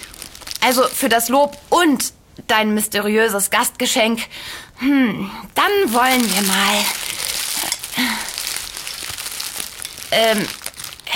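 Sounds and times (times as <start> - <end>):
paper bag crinkling and rustling: 0.0 - 1.6, 5.6 - 11.1
speech: 0.6 - 7.2, 10.1 - 10.6.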